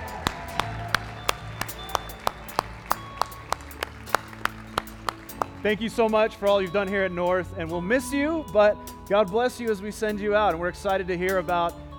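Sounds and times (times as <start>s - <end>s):
audience applauding: 0.0s - 5.8s
speech: 5.6s - 11.8s.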